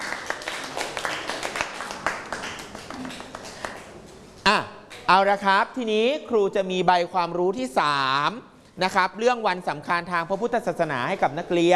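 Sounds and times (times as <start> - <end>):
applause clapping: 0.0 - 4.2
speech: 4.5 - 11.7.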